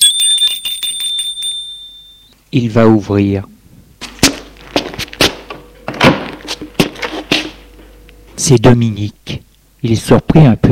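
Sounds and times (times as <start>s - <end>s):
doorbell ringing: 0.0s - 2.4s, 5.6s - 8.7s
speech: 2.5s - 3.5s, 8.5s - 10.6s.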